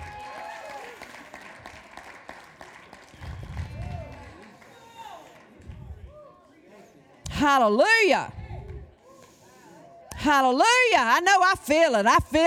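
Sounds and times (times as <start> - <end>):
audience hand clapping: 0.0 - 5.8
speech: 7.4 - 8.4, 10.2 - 12.4.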